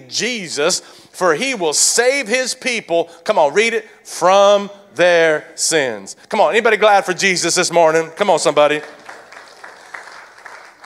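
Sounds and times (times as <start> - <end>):
speech: 0.1 - 9.0
light scattered golf clap from a small crowd: 8.7 - 10.8.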